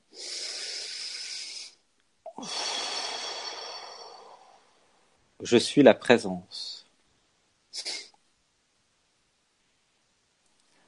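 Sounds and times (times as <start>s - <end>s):
deep breath: 0.1s - 5.2s
speech: 2.4s - 2.7s, 5.4s - 6.7s.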